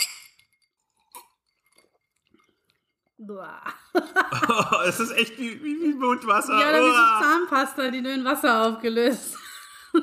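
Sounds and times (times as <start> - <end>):
small liqueur glasses clinking in a toast: 0.0 - 3.2
sipping: 0.8 - 3.1
speech: 3.2 - 9.4
laughter: 3.9 - 7.4.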